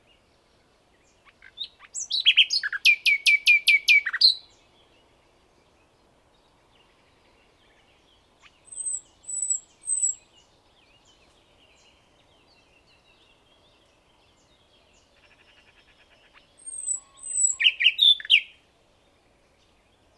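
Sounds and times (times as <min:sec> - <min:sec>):
common nightingale singing: 0:01.1 - 0:04.7, 0:07.6 - 0:18.6.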